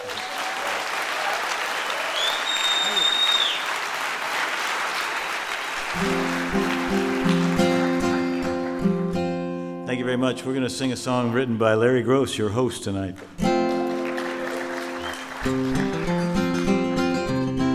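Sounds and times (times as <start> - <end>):
audience applause welcoming a performer onto a concert stage: 0.0 - 9.1, 13.2 - 17.6
speech: 10.0 - 13.4, 15.4 - 15.8.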